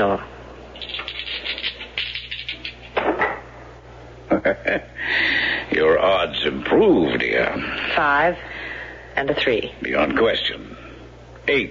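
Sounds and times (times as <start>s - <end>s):
speech: 0.0s - 0.4s, 4.4s - 5.0s, 5.7s - 8.5s, 9.2s - 10.9s, 11.5s - 11.6s
dice rattling and clattering on a table: 0.8s - 2.8s
laughter: 4.3s - 5.1s.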